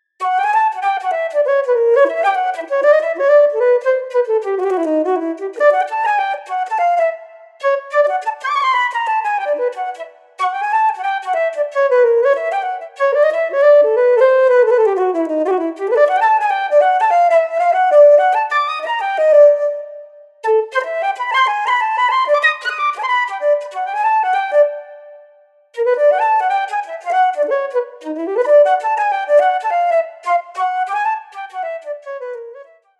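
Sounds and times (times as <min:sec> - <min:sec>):
flute: 0:00.0 - 0:32.9.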